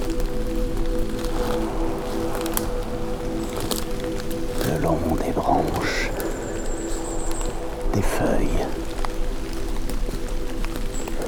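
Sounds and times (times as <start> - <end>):
steady low rumble: 0.0 - 11.2
water droplets dripping: 0.0 - 11.2
speech: 8.0 - 8.8.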